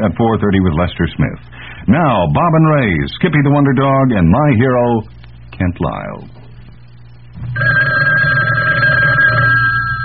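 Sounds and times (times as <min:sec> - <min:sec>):
speech: 0:00.0 - 0:06.4
low steady hum: 0:00.0 - 0:10.0
telephone bell ringing: 0:07.6 - 0:10.0.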